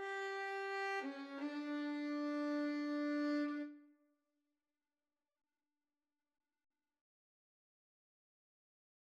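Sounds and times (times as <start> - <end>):
cello: 0.0 - 3.8
violin: 0.0 - 3.8.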